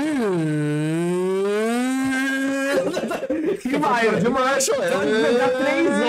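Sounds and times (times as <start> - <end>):
voice imitating a game console cooling fan: 0.0 - 3.1
laughter: 2.2 - 6.0
speech: 3.6 - 6.0.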